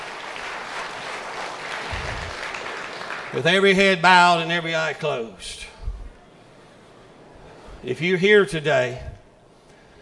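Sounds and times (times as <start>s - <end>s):
audience clapping hands in praise: 0.0s - 4.0s
speech: 3.3s - 5.7s, 7.8s - 9.1s.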